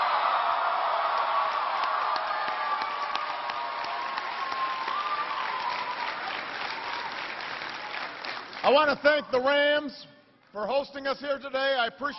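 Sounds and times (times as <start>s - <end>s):
audience applause: 0.0s - 9.0s
speech: 8.6s - 12.1s.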